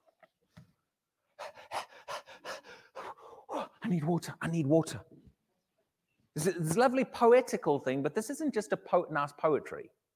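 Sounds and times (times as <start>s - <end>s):
person imitating panting like a thirsty deer: 1.4s - 3.8s
speech: 3.6s - 5.1s, 6.4s - 10.0s.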